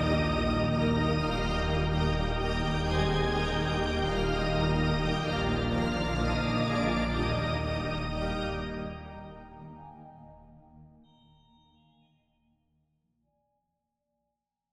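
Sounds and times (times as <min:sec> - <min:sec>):
organ: 0:00.0 - 0:09.5.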